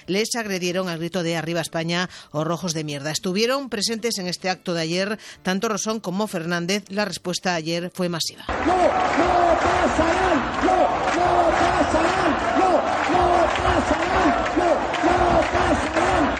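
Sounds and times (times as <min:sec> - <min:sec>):
speech: 0:00.1 - 0:14.5
large crowd chanting a protest slogan: 0:08.5 - 0:16.3.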